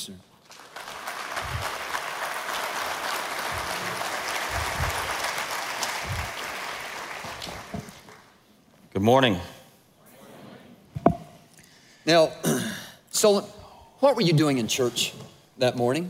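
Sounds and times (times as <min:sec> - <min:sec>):
speech: 0:00.0 - 0:00.3, 0:09.0 - 0:09.6, 0:13.2 - 0:16.0
audience applause welcoming a guest on stage: 0:00.4 - 0:08.4.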